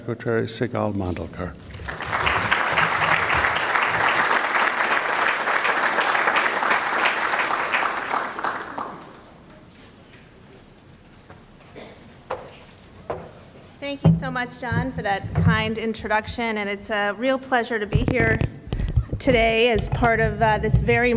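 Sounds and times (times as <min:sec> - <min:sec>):
speech: 0:00.0 - 0:02.0, 0:14.4 - 0:18.5, 0:19.2 - 0:21.1
audience applause: 0:01.7 - 0:09.5.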